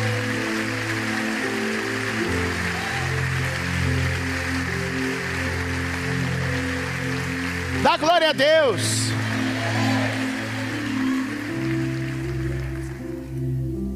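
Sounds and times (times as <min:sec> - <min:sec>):
loud applause in church: 0:00.0 - 0:13.4
speech: 0:07.9 - 0:09.2.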